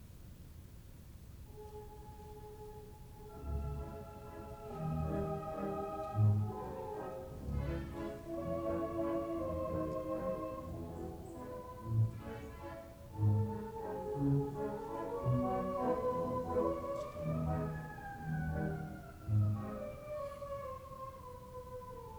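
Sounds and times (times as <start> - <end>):
waltz in C minor: 1.4 - 22.1.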